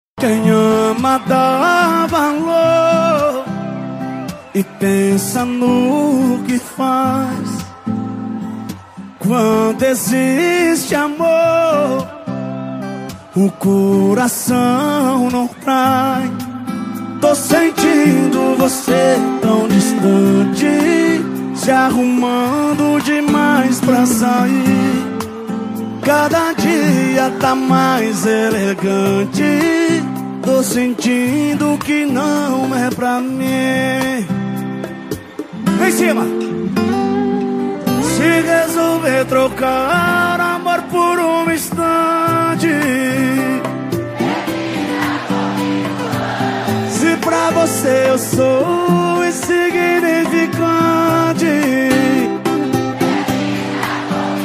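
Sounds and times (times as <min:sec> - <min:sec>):
sertanejo music: 0:00.2 - 0:54.4
rodeo announcers speaking: 0:35.6 - 0:36.8.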